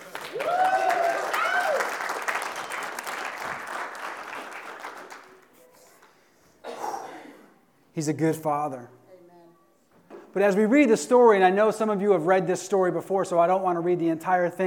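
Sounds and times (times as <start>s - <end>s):
audience applauding: 0.0s - 5.6s
speech: 8.0s - 9.0s, 10.3s - 14.6s.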